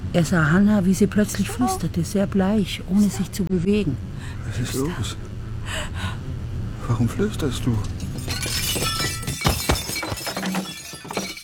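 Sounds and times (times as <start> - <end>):
speech: 0.1 - 6.1, 6.9 - 8.4
glass shattering and clinking: 7.8 - 11.4.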